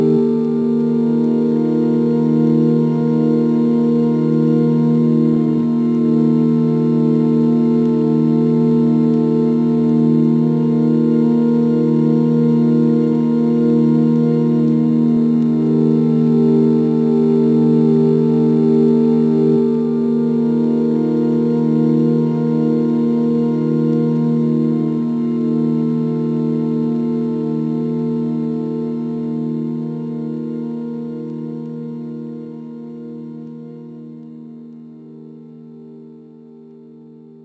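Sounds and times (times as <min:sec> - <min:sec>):
sine wave tones: 0:00.0 - 0:37.4.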